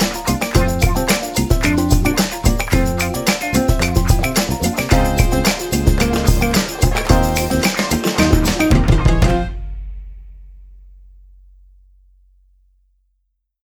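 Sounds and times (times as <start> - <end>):
beginner Latin jazz music: 0.0 - 10.4.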